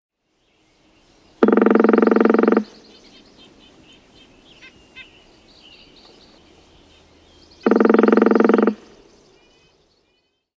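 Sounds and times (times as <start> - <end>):
Northern Flicker pecking: 1.4 - 2.9, 7.6 - 9.1.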